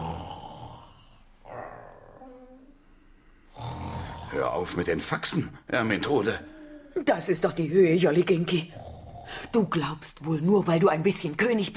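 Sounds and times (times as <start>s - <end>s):
loud rasping snoring: 0.0s - 1.2s, 3.5s - 4.7s, 8.6s - 9.5s
speech: 4.4s - 11.7s.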